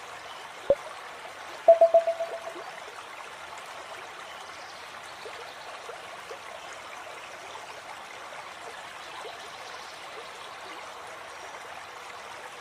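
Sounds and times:
river water flowing: 0.0 - 12.6
bright ringing taps: 1.7 - 2.6.

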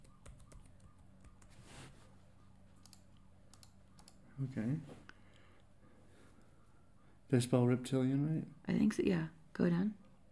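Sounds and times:
computer keyboard typing of search terms: 0.0 - 1.6, 2.8 - 4.2
faint hum: 0.0 - 10.3
speech: 4.4 - 5.0, 7.3 - 10.0.

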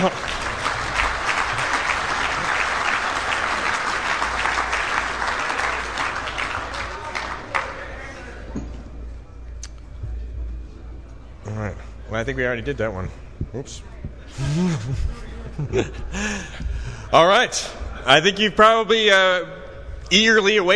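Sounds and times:
speech: 0.0 - 0.3, 12.2 - 20.7
laughter: 0.0 - 2.7, 14.3 - 17.1
audience applause: 0.0 - 8.3.

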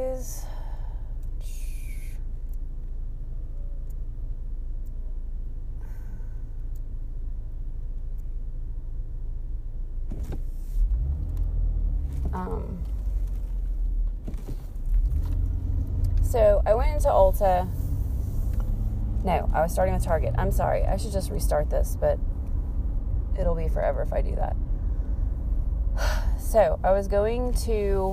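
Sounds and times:
road rumble from inside a moving car: 0.0 - 28.1
speech: 16.3 - 17.8, 19.2 - 22.3, 23.4 - 24.6, 26.0 - 28.1.

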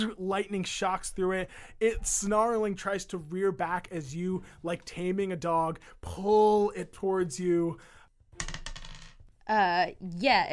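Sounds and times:
speech: 0.0 - 8.6, 9.5 - 10.5
dice rattling on a table: 8.4 - 9.3.

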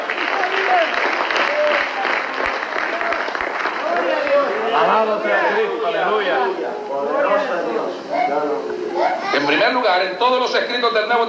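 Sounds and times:
audience applauding: 0.0 - 5.6
scattered voices and cheers: 0.0 - 9.6
speech: 9.4 - 11.2.

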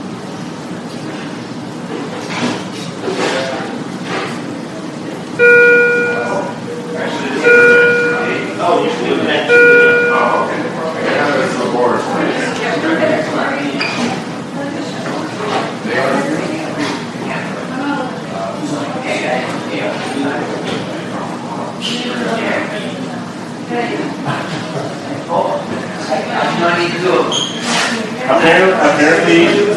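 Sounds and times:
hospital emergency room murmur of voices: 0.0 - 29.7
repeating electronic beep tone: 5.4 - 6.5, 7.4 - 8.5, 9.5 - 10.4.

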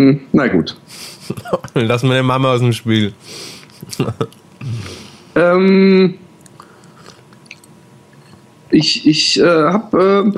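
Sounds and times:
speech: 0.0 - 6.2, 8.7 - 10.3
laughter: 1.2 - 2.1, 3.7 - 4.9
chewing strudel: 6.4 - 8.4.

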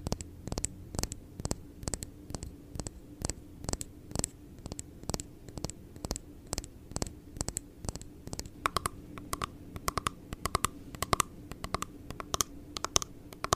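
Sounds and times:
tapping on a Blue Yeti microphone: 0.0 - 13.5.

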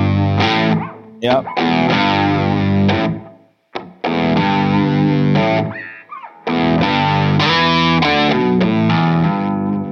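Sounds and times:
electric guitar through octave and distortion effects playing riffs: 0.0 - 9.9
speech: 1.2 - 2.0.

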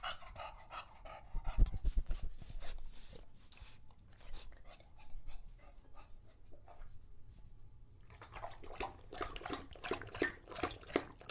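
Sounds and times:
English Bulldog panting with wheezy breaths: 0.0 - 6.8
English Bulldog lapping at a water bowl: 8.0 - 11.2.

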